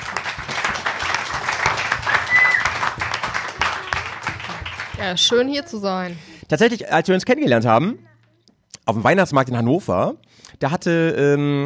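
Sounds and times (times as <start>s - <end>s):
crowd applauding: 0.0s - 5.4s
whistles: 2.1s - 2.7s
speech: 5.0s - 8.0s, 8.9s - 11.6s.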